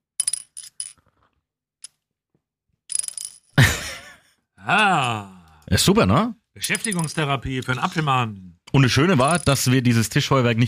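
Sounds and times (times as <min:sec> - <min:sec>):
small plastic spinning top whirling on a tabletop: 0:02.9 - 0:03.6, 0:06.8 - 0:07.2, 0:09.2 - 0:09.6
laughter: 0:03.6 - 0:05.1
speech: 0:04.7 - 0:10.6.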